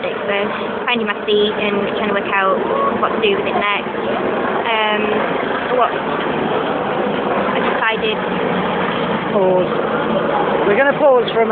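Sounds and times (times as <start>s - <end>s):
helicopter flying overhead: 0.0s - 11.5s
speech: 0.3s - 11.5s.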